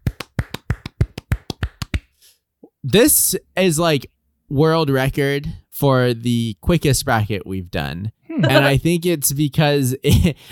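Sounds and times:
people clapping hands: 0.0s - 2.1s
speech: 2.8s - 10.5s.

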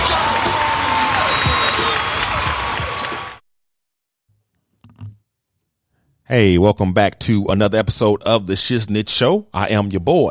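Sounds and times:
audience clapping to introduce a show at Red Rock Studios in Los Angeles: 0.0s - 3.4s
speech: 6.3s - 10.2s.

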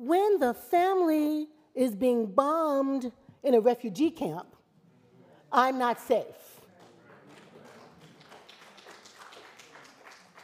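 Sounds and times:
speech: 0.1s - 4.6s, 5.5s - 6.5s
soft clapping: 6.6s - 10.4s.

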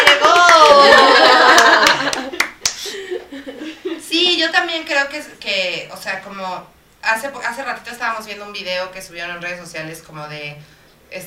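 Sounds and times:
applause: 0.0s - 2.8s
laughter: 0.1s - 4.0s
speech: 5.2s - 11.2s.

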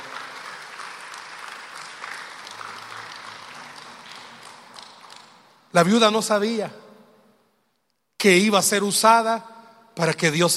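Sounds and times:
audience applause: 0.0s - 5.5s
speech: 5.7s - 6.8s, 8.2s - 10.5s.

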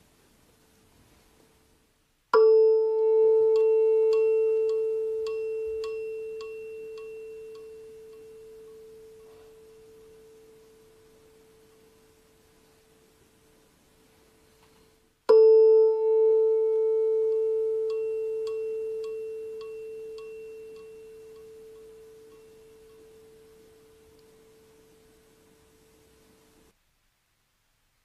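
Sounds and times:
tuning fork tone: 2.4s - 13.2s, 15.3s - 26.7s.

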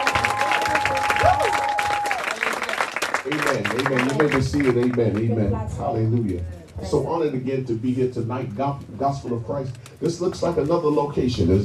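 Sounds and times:
audience clapping hands: 0.0s - 5.5s
speech: 3.3s - 11.6s.

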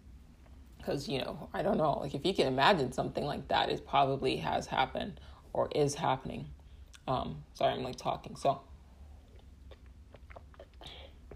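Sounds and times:
speech: 0.8s - 8.7s
person drinking water, gulping: 9.2s - 11.3s.

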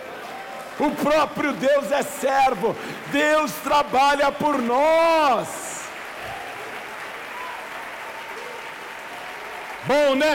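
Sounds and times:
audience applauding: 0.0s - 10.3s
speech: 0.8s - 5.6s, 9.9s - 10.3s.

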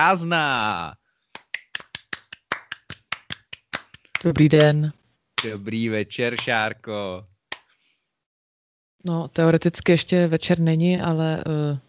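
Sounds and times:
speech: 0.0s - 1.0s, 4.2s - 7.3s, 9.0s - 11.8s
hand claps: 1.3s - 4.8s, 6.3s - 6.6s, 7.5s - 7.8s.

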